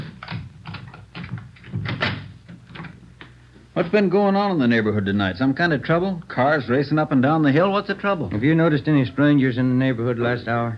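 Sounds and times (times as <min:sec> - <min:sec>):
door being unlocked and opened: 0:00.0 - 0:03.0
speech: 0:03.8 - 0:10.7.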